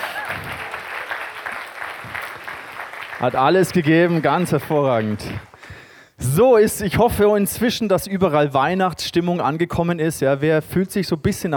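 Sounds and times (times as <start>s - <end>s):
audience applause: 0.0s - 5.6s
speech: 3.2s - 5.5s, 6.2s - 11.5s.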